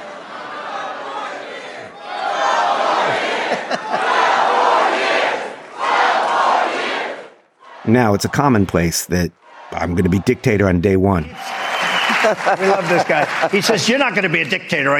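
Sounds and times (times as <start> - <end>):
rally crowd chanting: 0.0 - 12.5
laughter: 2.8 - 4.8, 11.4 - 14.9
speech: 7.9 - 11.5, 12.3 - 14.9.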